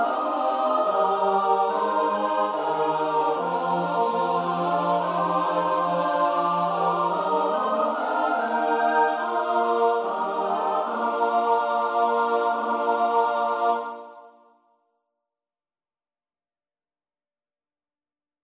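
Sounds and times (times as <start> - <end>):
SATB choir singing: 0.0 - 14.5.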